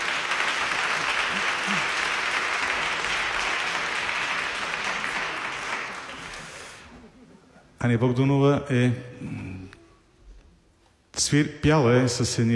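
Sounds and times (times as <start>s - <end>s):
audience applause: 0.0s - 7.0s
speech: 7.8s - 9.6s, 11.2s - 12.5s.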